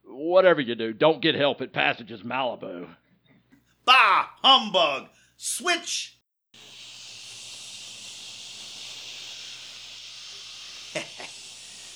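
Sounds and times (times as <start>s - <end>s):
speech: 0.3s - 3.0s, 3.9s - 6.7s
TV static hiss: 6.6s - 11.9s.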